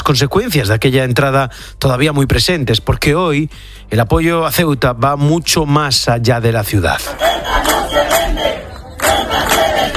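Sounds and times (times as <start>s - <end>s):
speech: 0.0s - 9.9s
crowd chanting protest slogan: 7.0s - 9.9s.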